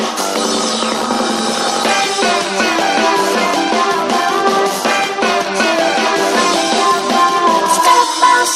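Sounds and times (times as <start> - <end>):
ringtone: 0.2 - 8.5.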